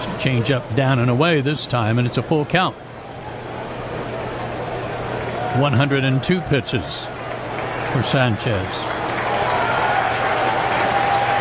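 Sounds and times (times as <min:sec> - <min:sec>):
speech: 0:00.0 - 0:02.9, 0:05.6 - 0:07.1, 0:07.9 - 0:09.0
baseball crowd cheering at Citizens Bank Park during a Phillies game: 0:03.9 - 0:11.4.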